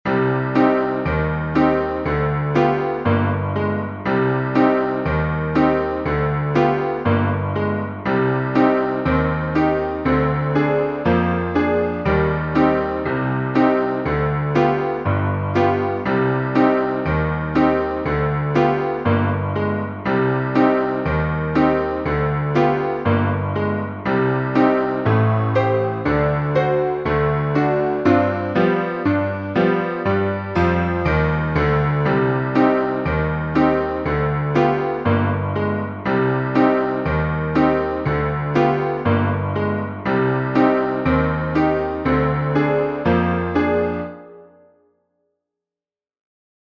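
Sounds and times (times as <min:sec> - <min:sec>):
piano: 0:00.0 - 0:45.2.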